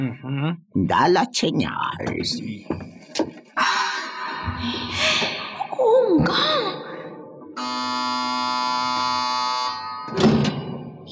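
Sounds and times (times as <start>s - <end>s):
speech: 0.0s - 3.9s, 4.6s - 6.8s
electric buzzer: 7.6s - 10.2s.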